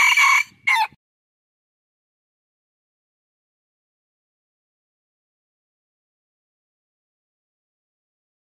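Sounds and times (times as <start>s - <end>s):
red junglefowl crowing: 0.0s - 1.0s.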